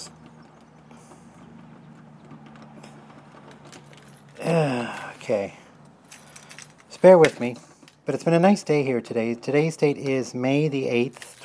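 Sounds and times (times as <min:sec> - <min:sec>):
keys jingling while unlocking a door: 0:03.5 - 0:08.1, 0:11.1 - 0:11.4
speech: 0:04.4 - 0:05.6, 0:07.0 - 0:11.3.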